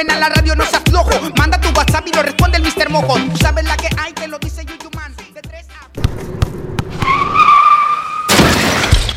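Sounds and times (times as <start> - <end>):
speech: 0.2 - 4.5
car tires skidding: 6.1 - 8.8
car crash of smashing metal and shattering glass: 6.2 - 9.1
debris thuds: 8.3 - 9.1.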